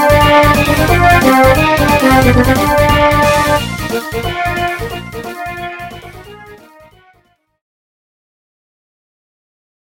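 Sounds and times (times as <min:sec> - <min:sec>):
MIDI boss battle music: 0:00.0 - 0:06.8.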